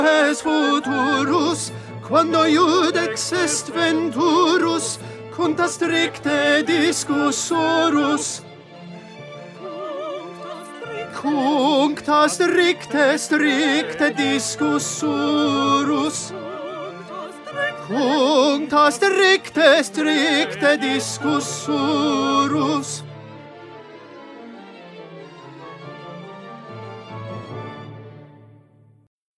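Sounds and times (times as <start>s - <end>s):
tenor singing: 0.0s - 8.7s, 9.3s - 23.3s.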